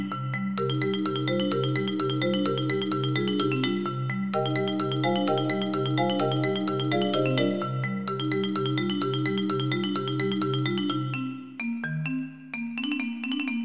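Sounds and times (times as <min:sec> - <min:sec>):
cheerful marimba: 0:00.0 - 0:13.6
chiptune music: 0:04.4 - 0:10.0.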